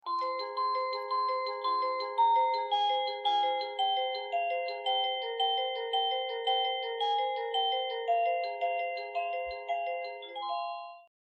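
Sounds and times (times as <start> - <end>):
melody: 0.0 - 11.1.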